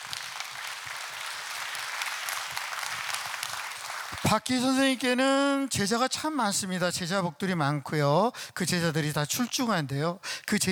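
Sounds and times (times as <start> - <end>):
audience applause: 0.0 - 4.3
speech: 4.2 - 10.7.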